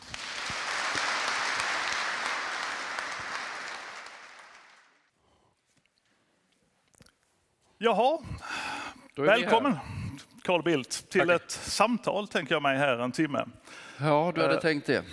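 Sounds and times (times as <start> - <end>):
audience applause: 0.0 - 5.1
speech: 7.8 - 8.6, 9.2 - 15.1.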